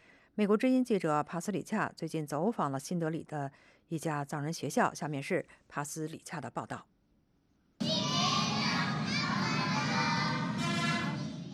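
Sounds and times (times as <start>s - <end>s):
speech: 0.4s - 6.9s
children singing and chanting nursery rhymes in Tibetan at a school in New Delhi: 7.8s - 11.5s.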